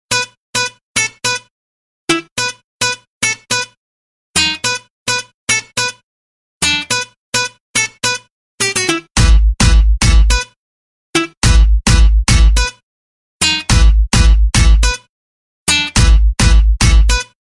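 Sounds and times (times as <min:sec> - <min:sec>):
music: 0:00.1 - 0:01.5, 0:02.1 - 0:03.8, 0:04.4 - 0:06.0, 0:06.6 - 0:12.8, 0:13.4 - 0:15.1, 0:15.7 - 0:17.4.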